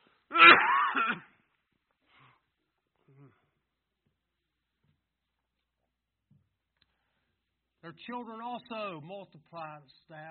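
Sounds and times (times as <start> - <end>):
person coughing: 0.3 - 1.4
speech: 0.4 - 1.3, 7.9 - 10.2.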